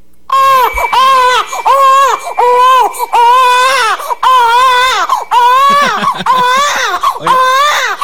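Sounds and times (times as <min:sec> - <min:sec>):
baby girl crying, played back on radio: 0:00.3 - 0:08.0
laughter: 0:05.3 - 0:07.8.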